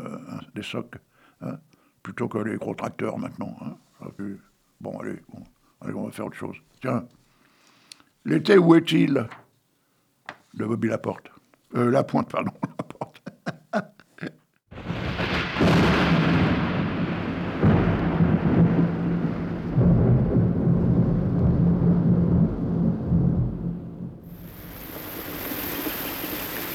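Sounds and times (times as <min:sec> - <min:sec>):
speech: 0:00.6 - 0:07.2, 0:08.2 - 0:09.4, 0:10.6 - 0:12.9, 0:13.7 - 0:14.4
laughter: 0:12.1 - 0:14.4
rain: 0:14.7 - 0:26.7
thunder: 0:14.7 - 0:26.7.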